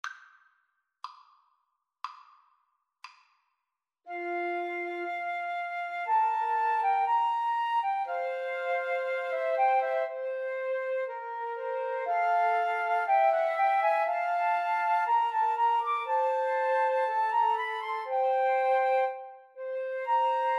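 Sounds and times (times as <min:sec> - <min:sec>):
flute trio playing a romance: 0:04.1 - 0:20.5.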